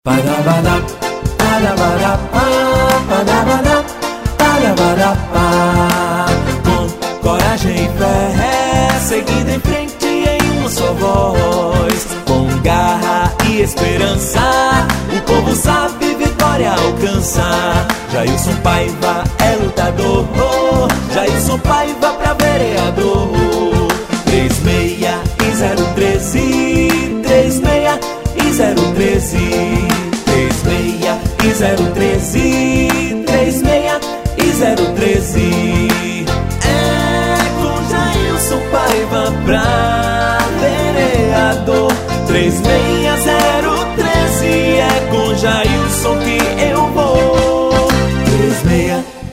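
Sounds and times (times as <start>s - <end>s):
jingle: 0.1s - 49.1s.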